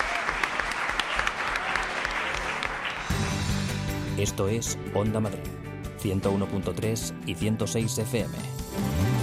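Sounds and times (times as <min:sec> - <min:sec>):
audience applause: 0:00.0 - 0:03.5
speech: 0:04.2 - 0:09.1.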